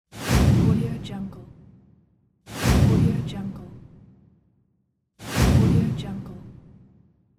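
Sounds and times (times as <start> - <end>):
transition whooshes: 0.1 - 0.8, 2.5 - 4.1, 5.2 - 6.9.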